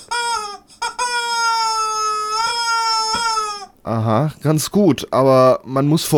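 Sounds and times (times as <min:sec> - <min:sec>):
rubber chicken squeaking: 0:00.0 - 0:03.8
speech: 0:03.9 - 0:06.1.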